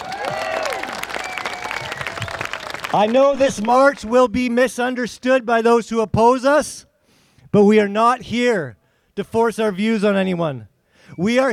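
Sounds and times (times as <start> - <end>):
crowd applause at a march: 0.0 - 4.1
speech: 2.9 - 6.9, 7.5 - 11.5.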